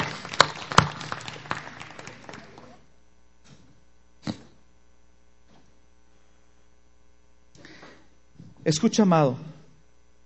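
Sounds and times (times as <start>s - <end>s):
audience applauding: 0.0s - 2.9s
speech: 8.7s - 9.5s.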